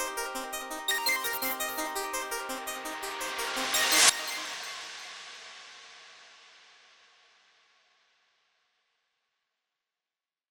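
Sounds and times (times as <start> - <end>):
drum and bass remix: 0.0 - 5.1.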